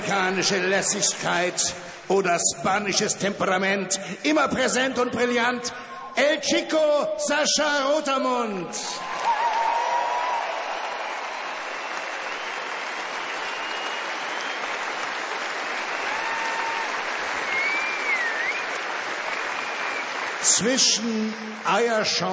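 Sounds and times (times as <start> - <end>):
speech: 0.1 - 9.1, 20.6 - 22.3
audience applause: 9.0 - 22.3
faint whistles: 11.7 - 14.9, 17.4 - 20.2.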